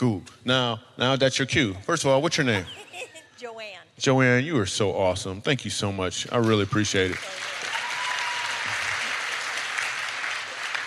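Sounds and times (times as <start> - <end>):
speech: 0.0 - 7.5
laughter: 2.4 - 3.4
audience applause: 6.4 - 10.8.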